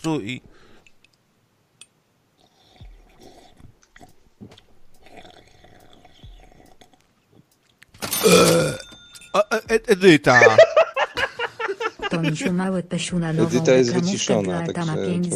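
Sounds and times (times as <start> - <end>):
speech: 0.0 - 0.7, 9.4 - 10.8, 12.1 - 15.3
quiet slurping: 2.3 - 7.9
loud low rumbling burp: 8.2 - 8.9
laughter: 10.2 - 12.8.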